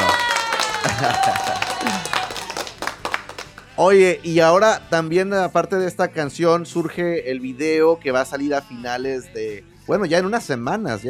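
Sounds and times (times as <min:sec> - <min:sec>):
laughter: 0:00.0 - 0:02.8
scattered applause from a small group: 0:00.0 - 0:03.8
speech: 0:01.0 - 0:02.2, 0:03.8 - 0:11.0.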